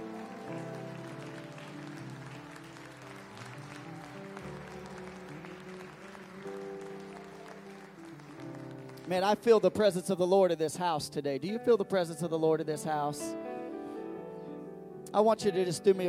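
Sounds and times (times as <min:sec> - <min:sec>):
audience hand clapping in praise: 0:00.0 - 0:10.3
sustained keyboard-like chords: 0:00.0 - 0:16.0
speech: 0:09.1 - 0:13.4, 0:15.1 - 0:16.0.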